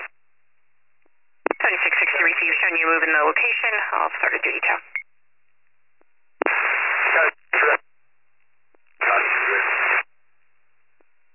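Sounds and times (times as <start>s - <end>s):
radio transmission static: 1.5s - 5.0s, 6.4s - 7.8s, 9.0s - 10.1s
speech: 2.4s - 5.0s.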